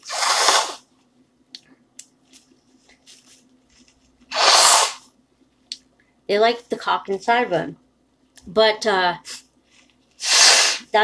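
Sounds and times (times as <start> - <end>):
person blowing nose: 0.0 - 0.9, 4.3 - 5.1, 10.2 - 10.9
speech: 6.3 - 7.8, 8.4 - 9.3.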